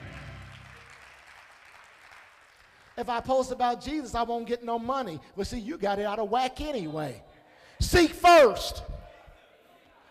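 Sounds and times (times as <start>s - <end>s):
audience clapping: 0.0s - 3.5s
speech: 3.0s - 8.9s.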